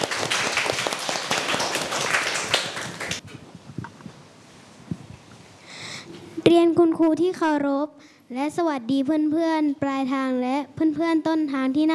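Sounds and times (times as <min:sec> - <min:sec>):
crowd clapping for a presenting group: 0:00.0 - 0:03.2
speech: 0:06.6 - 0:11.9.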